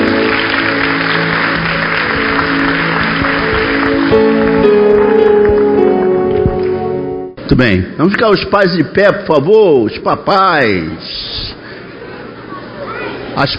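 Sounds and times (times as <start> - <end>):
crowd clapping: 0.0 - 7.0
speech: 7.5 - 11.4, 13.4 - 13.5.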